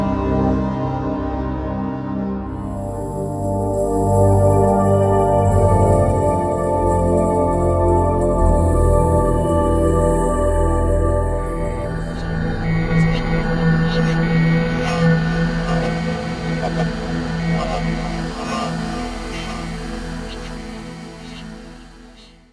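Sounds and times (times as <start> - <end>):
atmosphere: 0.0 - 22.5.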